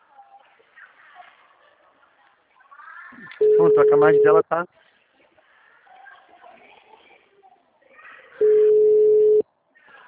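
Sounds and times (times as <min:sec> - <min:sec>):
quiet talk: 0:00.0 - 0:10.0
speech: 0:03.1 - 0:04.8
telephone tone after the other person hung up: 0:03.4 - 0:04.4, 0:08.4 - 0:09.4.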